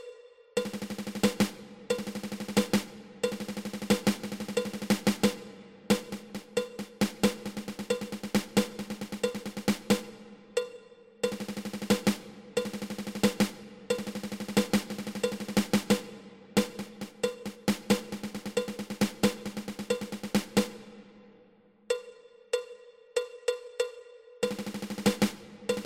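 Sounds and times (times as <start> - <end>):
ten stroke drum roll: 0.6 - 10.2, 11.2 - 21.0, 24.4 - 25.8.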